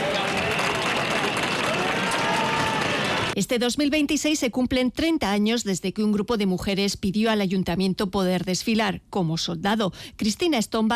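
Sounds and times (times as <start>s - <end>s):
large crowd applause: 0.0s - 3.4s
speech: 3.4s - 10.9s.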